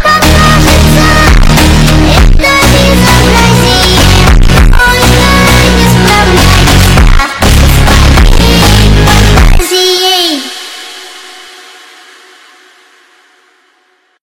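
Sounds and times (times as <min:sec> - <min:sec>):
Brazilian funk music: 0:00.0 - 0:09.6.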